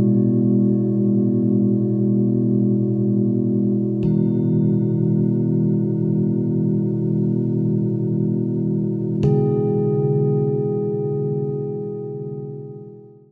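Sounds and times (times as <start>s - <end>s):
singing bowls: 0.0s - 13.3s.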